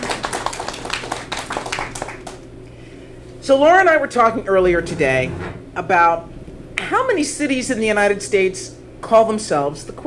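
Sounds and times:
crowd applause: 0:00.0 - 0:02.4
speech: 0:03.5 - 0:06.3, 0:06.9 - 0:10.0.

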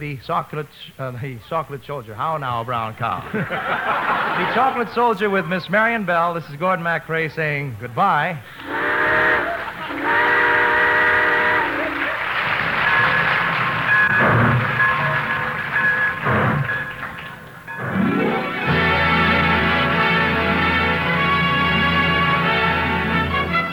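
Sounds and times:
speech: 0:00.0 - 0:09.2
laughter: 0:03.1 - 0:05.7, 0:09.1 - 0:10.6, 0:11.5 - 0:14.0
steam train whistle blasts: 0:08.5 - 0:12.2, 0:18.6 - 0:23.7
steam train chugging rumble: 0:08.6 - 0:23.4.

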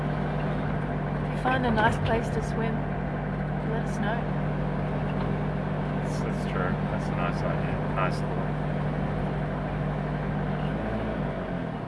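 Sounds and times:
beige Toyota campervan driving along a main city street: 0:00.0 - 0:11.8
speech: 0:01.4 - 0:03.0, 0:03.7 - 0:04.4, 0:06.1 - 0:08.6.

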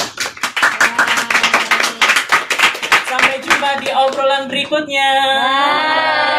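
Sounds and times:
audience clapping closing a talk about choir singing: 0:00.0 - 0:04.8
speech: 0:03.7 - 0:06.2.

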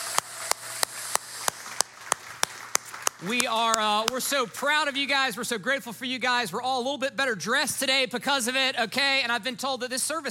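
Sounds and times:
audience applause: 0:00.0 - 0:05.0
speech: 0:03.2 - 0:10.2.

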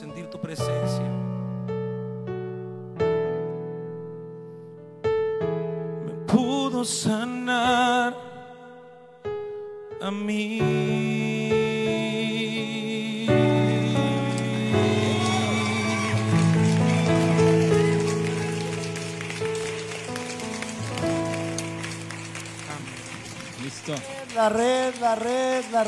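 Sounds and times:
keyboard chords: 0:00.0 - 0:07.6, 0:08.2 - 0:25.8
speech: 0:00.3 - 0:01.0, 0:06.8 - 0:08.3, 0:10.0 - 0:11.2, 0:23.9 - 0:25.8
crowd clapping: 0:13.7 - 0:25.8.

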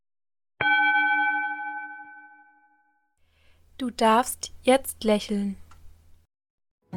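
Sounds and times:
gong: 0:00.6 - 0:03.0
speech: 0:03.8 - 0:05.6.

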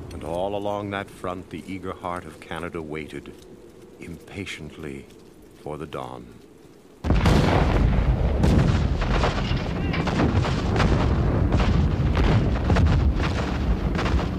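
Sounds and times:
speech: 0:00.2 - 0:06.4
artillery barrage of many guns firing: 0:07.0 - 0:14.3.

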